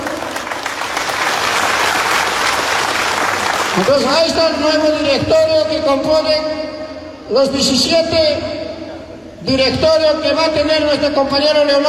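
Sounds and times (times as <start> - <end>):
applause: 0.0 - 4.3
speech: 3.8 - 6.6, 7.3 - 8.6, 9.4 - 11.8.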